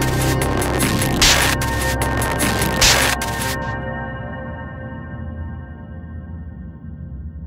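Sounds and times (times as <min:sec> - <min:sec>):
outro music: 0:00.0 - 0:04.1.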